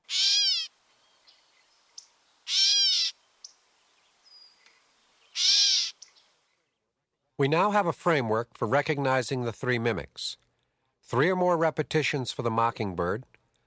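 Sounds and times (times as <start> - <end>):
gray catbird's cat-like meow call: 0.1 - 0.7, 2.5 - 3.2, 5.3 - 6.1
speech: 7.4 - 10.5, 11.1 - 13.4.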